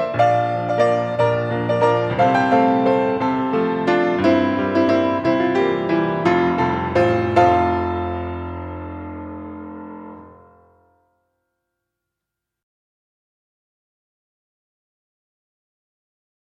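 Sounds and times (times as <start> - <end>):
ballet music for fouetté ronds de jambe en tournant: 0.0 - 11.1.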